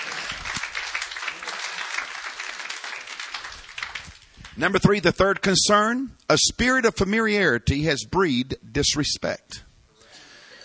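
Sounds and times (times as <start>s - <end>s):
audience clapping hands: 0.0s - 5.4s
speech: 4.6s - 9.6s.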